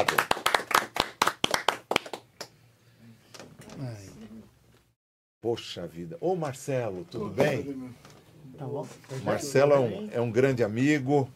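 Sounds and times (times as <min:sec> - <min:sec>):
round of applause: 0:00.0 - 0:02.5
speech: 0:05.4 - 0:11.3.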